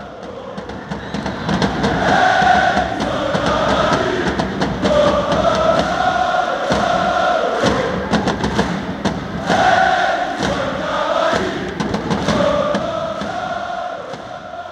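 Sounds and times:
football ultras chanting in stadium stands: 0:00.0 - 0:14.7.

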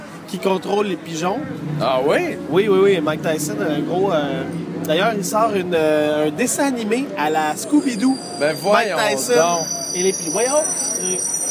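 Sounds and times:
speech: 0:00.3 - 0:11.5
garbage truck screech: 0:07.3 - 0:11.5.

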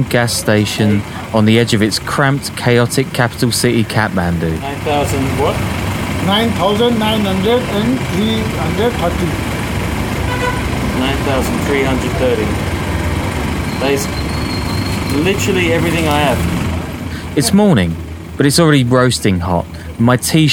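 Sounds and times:
speech: 0:00.0 - 0:09.5, 0:11.0 - 0:12.8, 0:13.8 - 0:14.2, 0:15.1 - 0:16.6, 0:17.4 - 0:20.5
busy traffic rumbling at a tumble-down gas station in Kathmandu, Nepal: 0:00.0 - 0:20.5
engines idling at a gas station in Kathmandu, Nepal: 0:00.0 - 0:20.5
vehicle horns tooting in Kathmandu, Nepal: 0:10.2 - 0:12.0, 0:13.0 - 0:16.4.

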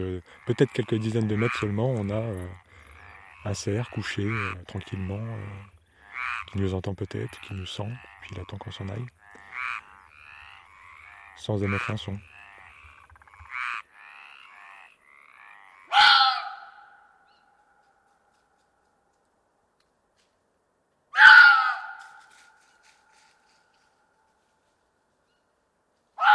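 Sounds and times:
speech: 0:00.0 - 0:02.6, 0:03.4 - 0:09.8, 0:11.4 - 0:12.3
faint chirps: 0:00.0 - 0:13.2
fox calling at night: 0:15.8 - 0:17.0, 0:21.1 - 0:22.4, 0:26.2 - 0:26.3.

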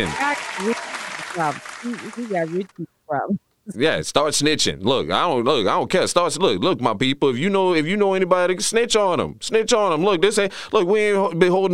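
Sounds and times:
clapping applause: 0:00.0 - 0:02.8
speech: 0:00.0 - 0:11.7.

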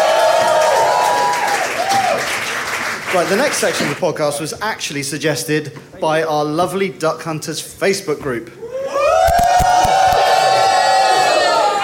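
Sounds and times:
clapping and whoops: 0:00.0 - 0:03.2, 0:08.8 - 0:11.8
live audience cheering: 0:00.0 - 0:03.8, 0:08.6 - 0:11.8
speech: 0:03.1 - 0:08.6.

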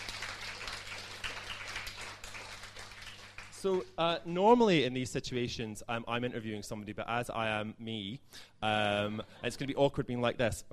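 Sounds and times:
audience applause: 0:00.0 - 0:03.7
speech: 0:03.6 - 0:10.7.

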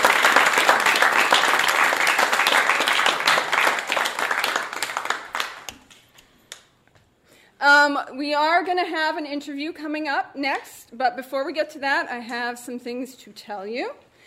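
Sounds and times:
studio audience applauding storytellers at a live storytelling night: 0:00.0 - 0:06.1
speech: 0:07.9 - 0:14.0.

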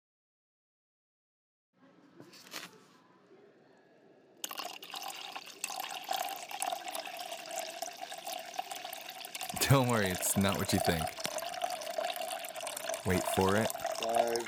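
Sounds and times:
liquid being poured while measuring: 0:04.4 - 0:14.4
speech: 0:09.6 - 0:11.2, 0:13.0 - 0:14.4.

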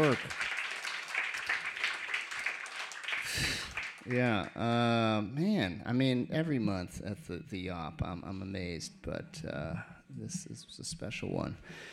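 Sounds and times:
audience applause: 0:00.0 - 0:04.6
speech: 0:00.1 - 0:00.5, 0:04.1 - 0:11.9.

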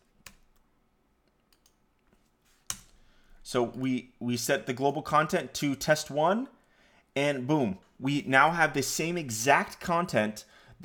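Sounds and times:
computer mouse clicks while editing a web page in Stacks: 0:01.2 - 0:03.0
speech: 0:03.5 - 0:06.6, 0:07.2 - 0:10.8.

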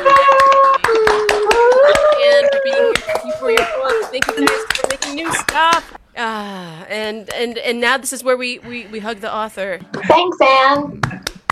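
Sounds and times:
audience applause: 0:00.0 - 0:05.1
speech: 0:07.0 - 0:11.1.

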